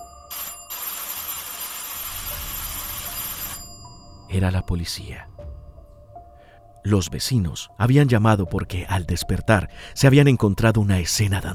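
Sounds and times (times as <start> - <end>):
doorbell ringing insistently: 0.0 - 5.9
speech: 4.3 - 5.4, 6.8 - 11.5.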